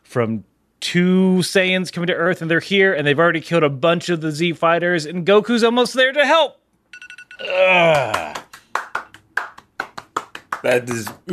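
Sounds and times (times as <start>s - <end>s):
speech: 0.1s - 6.6s, 7.4s - 8.4s, 10.6s - 11.3s
gentle hand clapping: 7.9s - 11.3s.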